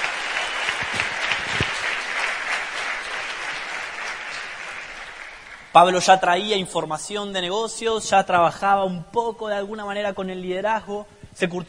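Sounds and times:
audience applause: 0.0 - 5.7
speech: 5.8 - 11.6.

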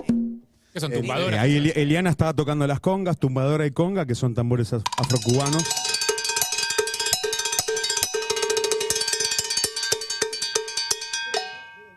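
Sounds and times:
speech: 0.8 - 6.0
cowbells being played: 4.9 - 11.9.

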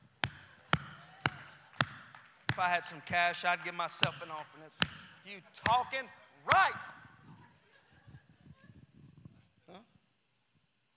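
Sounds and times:
one person clapping hands: 0.2 - 3.0
laughter: 0.4 - 1.8, 5.3 - 8.9
speech: 2.6 - 7.0.

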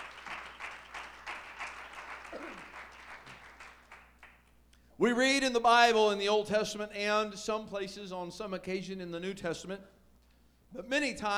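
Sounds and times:
audience applause, hand clapping: 0.0 - 4.4
speech: 5.0 - 10.0, 10.7 - 11.3.

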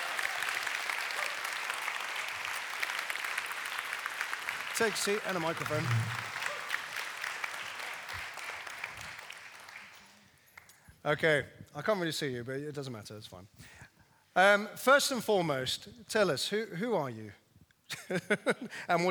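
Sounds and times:
audience applause: 0.0 - 10.0
speech: 4.8 - 6.3, 11.0 - 13.7, 14.4 - 17.4, 18.1 - 19.0.

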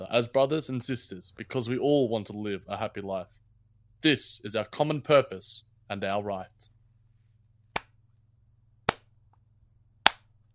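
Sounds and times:
speech: 0.1 - 3.4, 4.0 - 6.7
slow clap: 7.7 - 8.0, 10.0 - 10.4.

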